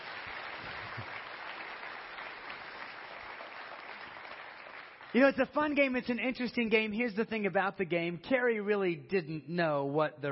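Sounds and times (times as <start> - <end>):
audience round of applause: 0.0 - 5.7
speech: 5.1 - 10.3.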